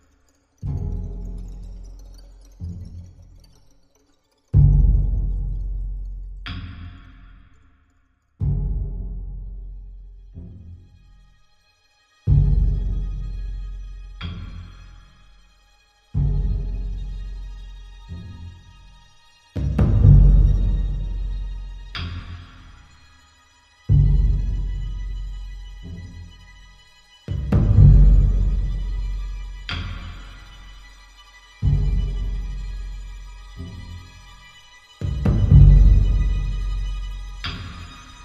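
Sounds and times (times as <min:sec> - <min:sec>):
drums: 0:04.6 - 0:07.1, 0:08.4 - 0:09.5, 0:12.3 - 0:14.9, 0:16.2 - 0:18.4, 0:19.6 - 0:22.8, 0:23.9 - 0:26.4, 0:27.3 - 0:31.0, 0:31.6 - 0:38.2.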